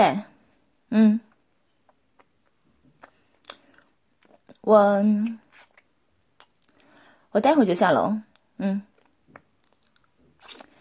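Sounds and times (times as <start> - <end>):
speech: 0.0 - 0.3, 0.9 - 1.2, 4.6 - 5.4, 7.3 - 8.9
person chewing while eating breakfast: 1.3 - 4.6, 5.2 - 7.0, 8.3 - 10.7.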